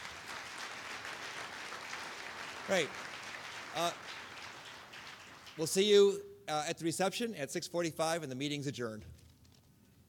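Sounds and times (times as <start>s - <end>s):
event audience clapping for the sponsors: 0.0s - 6.2s
speech: 2.7s - 3.1s, 3.7s - 4.2s, 5.6s - 9.2s.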